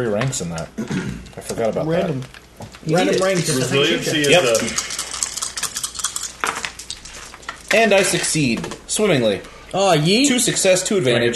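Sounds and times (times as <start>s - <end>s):
speech: 0.0s - 4.9s, 7.7s - 11.3s
dice rattling across a hard surface: 4.2s - 8.8s.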